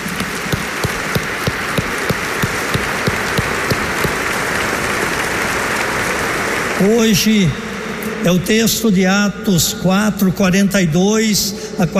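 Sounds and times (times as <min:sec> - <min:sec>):
rhythmic clapping in unison: 0:00.0 - 0:06.9
crowd applauding: 0:00.0 - 0:08.3
speech: 0:06.8 - 0:07.6, 0:08.2 - 0:11.9.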